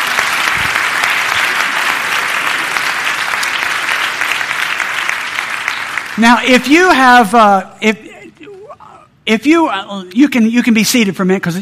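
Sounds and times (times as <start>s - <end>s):
audience applause: 0.0s - 6.3s
speech: 6.2s - 8.1s, 9.3s - 11.5s.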